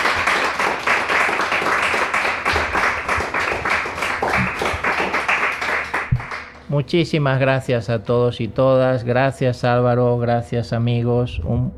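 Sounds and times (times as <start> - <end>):
warm applause: 0.0 - 6.6
speech: 6.7 - 11.7.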